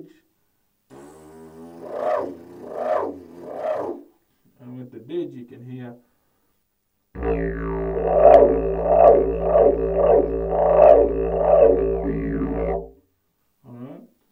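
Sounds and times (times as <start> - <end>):
didgeridoo lesson: 0.9 - 4.1, 7.2 - 13.0.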